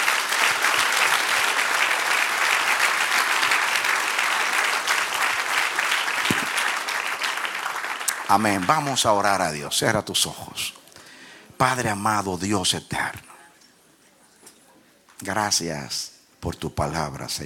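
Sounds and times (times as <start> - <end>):
audience applause: 0.0 - 9.0
speech: 8.3 - 10.8, 11.6 - 13.3, 15.2 - 17.4.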